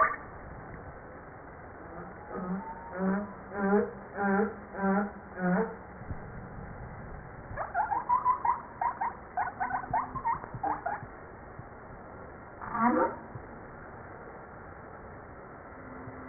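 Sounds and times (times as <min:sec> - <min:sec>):
humpback whale song: 0:01.9 - 0:05.8, 0:07.6 - 0:11.0.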